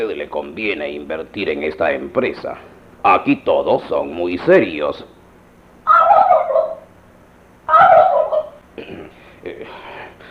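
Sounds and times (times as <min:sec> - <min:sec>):
speech: 0:00.0 - 0:05.2
turkey gobbling at a business premises: 0:05.8 - 0:06.9, 0:07.7 - 0:08.6.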